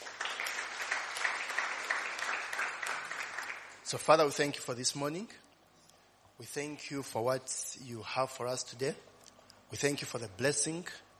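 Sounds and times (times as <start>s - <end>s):
audience hand clapping: 0.0s - 3.9s
speech: 3.9s - 5.4s, 6.4s - 9.1s, 9.7s - 11.0s.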